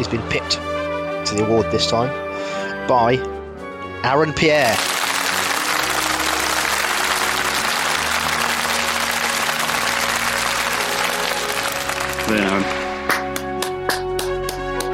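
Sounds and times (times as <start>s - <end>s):
speech: 0.0s - 3.4s, 4.0s - 5.0s, 12.3s - 12.8s
round of applause: 4.7s - 14.9s.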